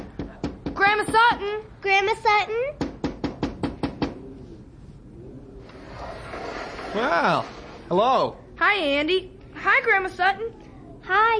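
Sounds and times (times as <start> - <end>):
knocking on a window: 0.0 - 1.4, 2.8 - 4.2
speech: 1.0 - 2.8, 7.0 - 11.3.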